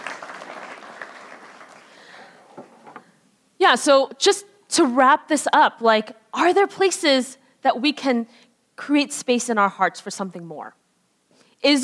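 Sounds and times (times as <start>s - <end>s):
audience applause: 0.0s - 2.4s
speech: 3.6s - 10.8s, 11.6s - 11.8s.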